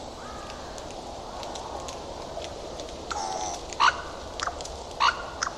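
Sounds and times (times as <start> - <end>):
bird giving harsh nasal cawing calls: 0.2 - 1.4, 3.1 - 5.5.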